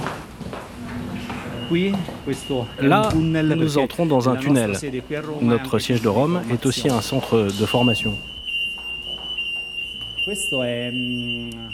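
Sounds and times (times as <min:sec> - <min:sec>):
fire alarm in simulated fire drill at Rome headquarters: 0:00.7 - 0:11.7
speech: 0:01.7 - 0:08.3, 0:10.3 - 0:11.7.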